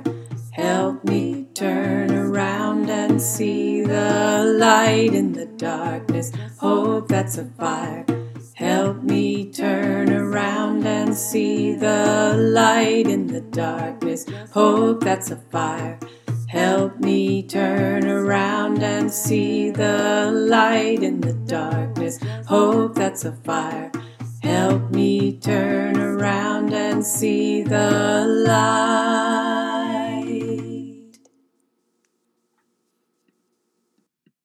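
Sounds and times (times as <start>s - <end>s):
tenor singing: 0.0s - 31.2s
choir singing: 0.6s - 6.0s, 8.6s - 12.9s, 16.6s - 21.8s, 23.5s - 31.1s.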